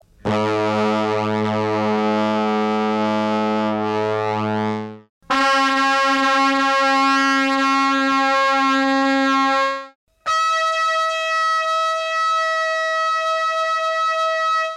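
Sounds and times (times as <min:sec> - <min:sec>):
brass instruments: 0:00.3 - 0:13.6, 0:14.4 - 0:14.7.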